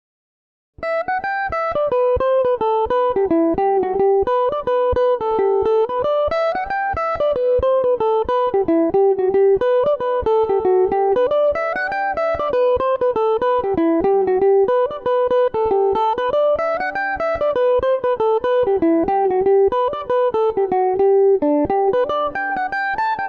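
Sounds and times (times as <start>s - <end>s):
mandolin playing a tune in G major: 0.8s - 23.2s.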